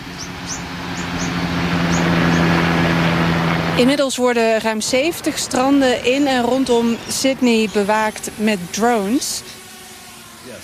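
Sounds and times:
helicopter flying past over the ocean: 0.0s - 10.6s
speech: 3.8s - 9.6s.

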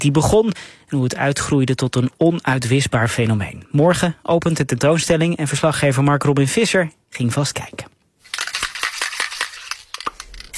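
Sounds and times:
speech: 0.0s - 8.0s
aerosol spray can spraying: 8.2s - 10.5s.

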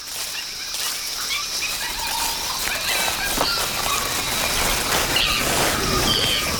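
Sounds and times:
forest chatter and rustling: 0.0s - 6.5s
early apes screeching in subtropical forest: 1.9s - 6.5s.

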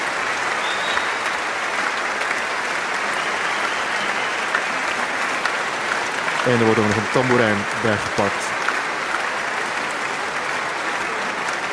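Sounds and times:
audience applause: 0.0s - 11.7s
speech: 6.4s - 8.5s.

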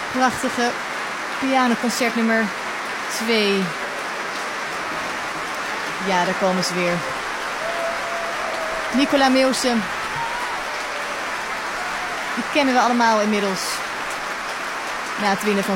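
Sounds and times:
speech: 0.1s - 3.8s, 6.0s - 7.1s, 8.9s - 9.9s, 12.5s - 13.8s, 15.2s - 15.7s
enthusiastic applause: 3.4s - 15.7s.

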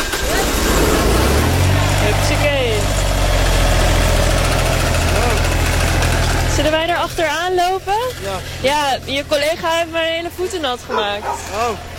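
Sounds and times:
truck engine idling: 0.0s - 11.9s
speech: 6.8s - 11.9s.

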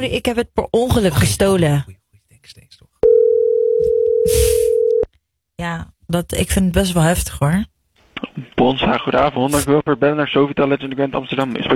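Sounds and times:
speech: 0.0s - 2.7s, 5.6s - 7.7s, 8.3s - 11.7s
telephone dial tone while a call is being placed: 3.0s - 5.1s.

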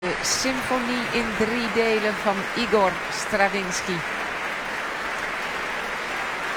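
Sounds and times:
audience applause after a performance of a symphony: 0.0s - 6.5s
speech: 0.2s - 4.2s.

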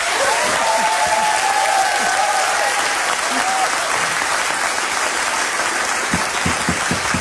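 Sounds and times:
audience applause: 0.0s - 7.1s.

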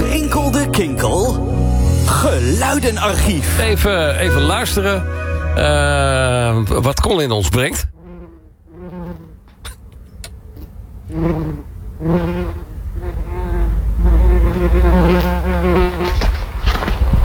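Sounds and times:
low rumble: 0.0s - 6.7s
speech: 0.8s - 1.6s, 2.2s - 7.9s, 11.1s - 13.2s, 14.6s - 16.2s
bumblebee buzzing among rock garden flowers: 11.1s - 16.2s.

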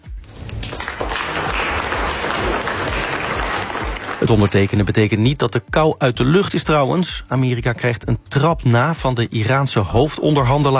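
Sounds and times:
crowd applause: 0.0s - 4.9s
speech: 4.2s - 10.7s.

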